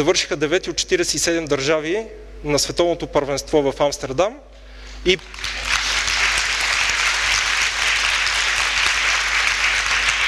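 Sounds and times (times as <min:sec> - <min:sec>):
speech: 0:00.0 - 0:05.7
audience applause: 0:05.3 - 0:10.2.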